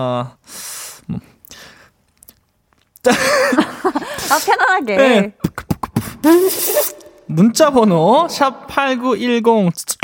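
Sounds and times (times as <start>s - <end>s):
speech: 0.0s - 1.3s, 3.0s - 5.4s, 6.2s - 10.0s
vocal beatboxing: 5.4s - 7.3s, 9.9s - 10.0s.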